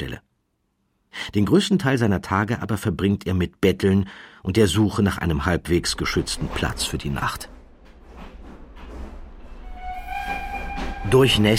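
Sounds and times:
speech: 0:01.3 - 0:07.6, 0:11.1 - 0:11.5
train rumbling at the Anhalter Bahnhof railway station: 0:04.7 - 0:11.5
high sustained metallic squeal of a train: 0:09.4 - 0:11.5.

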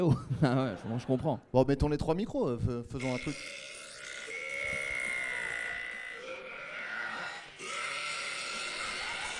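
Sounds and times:
laughter: 0:00.0 - 0:01.5, 0:08.2 - 0:09.3
speech: 0:00.0 - 0:03.7
person burping and shouting at the same time: 0:03.0 - 0:09.3.

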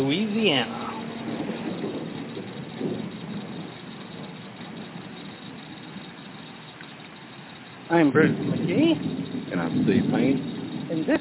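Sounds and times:
speech: 0:00.0 - 0:01.4, 0:07.9 - 0:11.1
rain falling: 0:00.0 - 0:11.1.

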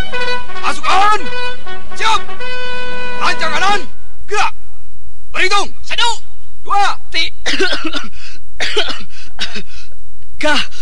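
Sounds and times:
speech: 0:00.7 - 0:02.6, 0:03.2 - 0:04.6, 0:05.4 - 0:09.8, 0:10.4 - 0:10.8
person coughing: 0:07.4 - 0:09.8.

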